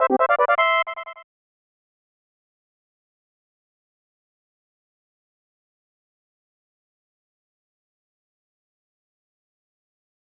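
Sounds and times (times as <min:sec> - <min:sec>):
key item fanfare: 0:00.0 - 0:01.2.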